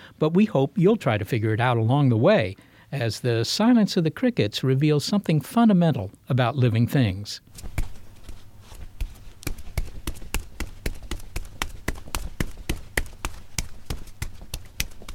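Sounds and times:
speech: 0:00.2 - 0:07.7
footsteps of someone running down the street: 0:07.5 - 0:15.1.

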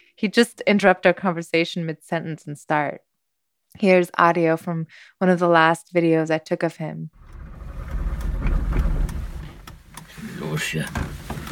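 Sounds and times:
speech: 0:00.2 - 0:03.1, 0:03.8 - 0:07.2, 0:10.6 - 0:11.2
sharp clicks and clanks: 0:07.2 - 0:10.2
old car engine starting and running: 0:07.2 - 0:10.8.

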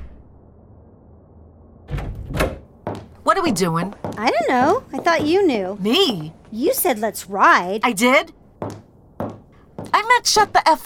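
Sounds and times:
front door slammed shut: 0:01.9 - 0:03.1
speech: 0:03.4 - 0:08.4, 0:10.2 - 0:10.8.

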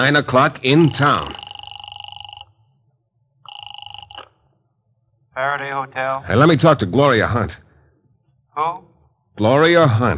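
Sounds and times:
speech: 0:00.0 - 0:01.4, 0:05.4 - 0:07.6, 0:08.6 - 0:10.1
telephone ringing: 0:00.0 - 0:02.5, 0:03.5 - 0:04.3.

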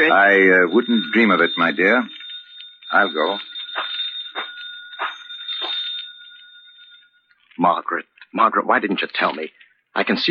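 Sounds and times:
speech: 0:00.0 - 0:02.2, 0:02.9 - 0:04.0, 0:07.6 - 0:10.2
telephone bell ringing with a shrill metallic trill: 0:00.0 - 0:07.4.

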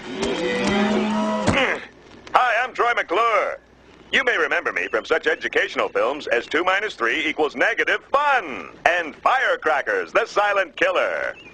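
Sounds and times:
cow mooing: 0:00.3 - 0:01.6
speech: 0:03.0 - 0:11.5.

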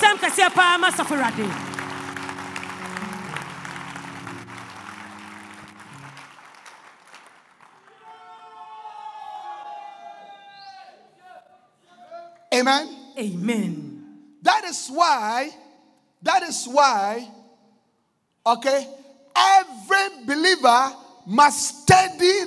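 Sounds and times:
audience clapping: 0:00.0 - 0:08.8
speech: 0:00.4 - 0:01.8, 0:12.6 - 0:15.6, 0:16.2 - 0:17.4, 0:18.4 - 0:22.4
sustained keyboard chords: 0:01.1 - 0:06.2.

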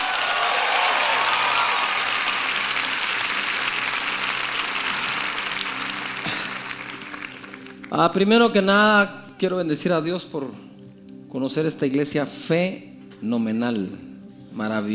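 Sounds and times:
applause: 0:00.0 - 0:08.1
speech: 0:08.0 - 0:10.7, 0:11.3 - 0:14.9.

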